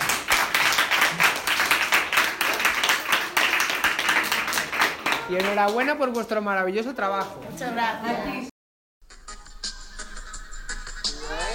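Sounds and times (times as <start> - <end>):
audience applause: 0.0 - 5.3
speech: 5.3 - 8.5.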